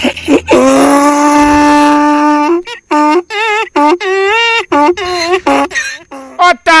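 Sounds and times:
donkey braying: 0:00.0 - 0:06.4.

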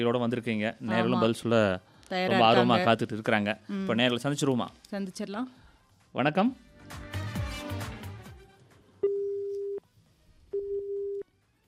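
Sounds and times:
speech: 0:00.0 - 0:07.1
telephone busy tone after caller disconnected: 0:09.0 - 0:09.8, 0:10.6 - 0:11.2.

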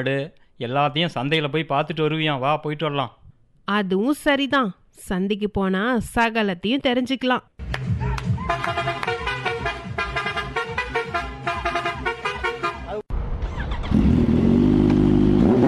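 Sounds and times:
speech: 0:00.0 - 0:07.7
vehicles honking horns: 0:08.1 - 0:13.0
busy road traffic engine noise: 0:08.6 - 0:15.6.

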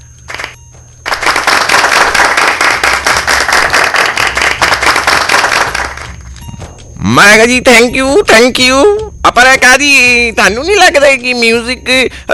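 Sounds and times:
audience clapping to welcome a program presenter: 0:00.3 - 0:06.3
speech: 0:07.0 - 0:12.3.

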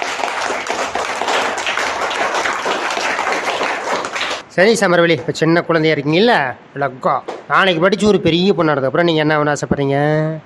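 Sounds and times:
children clapping hands: 0:00.0 - 0:04.4
speech: 0:04.6 - 0:10.4.

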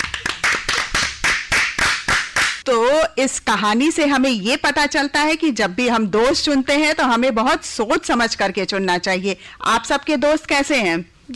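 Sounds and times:
audience clapping after a storytelling session: 0:00.0 - 0:02.6
speech: 0:02.6 - 0:11.3.

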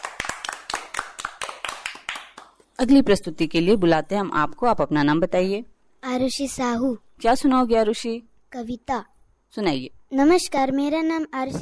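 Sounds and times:
children's applause: 0:00.0 - 0:02.7
speech: 0:02.8 - 0:11.6.

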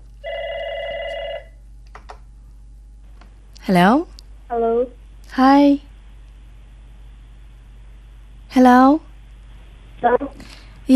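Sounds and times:
telephone ringing for an incoming call: 0:00.2 - 0:01.6
speech: 0:03.7 - 0:05.9, 0:08.6 - 0:09.1, 0:10.0 - 0:10.9.

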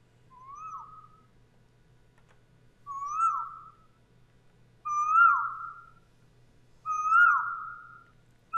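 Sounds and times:
faint low hum: 0:00.0 - 0:08.5
Asian koel whistled calls: 0:00.3 - 0:01.3, 0:02.9 - 0:04.0, 0:04.8 - 0:06.0, 0:06.8 - 0:08.5.

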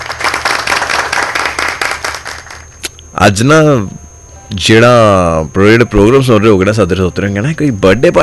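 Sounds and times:
audience clapping after a recited couplet: 0:00.0 - 0:02.8
speech: 0:03.2 - 0:08.2.

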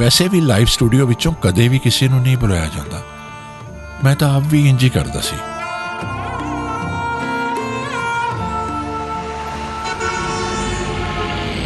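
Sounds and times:
speech: 0:00.0 - 0:03.1, 0:04.0 - 0:05.5
bus horn honking on a street: 0:02.7 - 0:11.6.

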